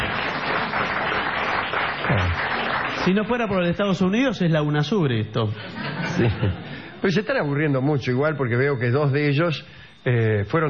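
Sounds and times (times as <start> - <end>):
applause from a multinational audience: 0.0 - 3.8
speech: 3.1 - 10.6
laughter: 5.6 - 7.2.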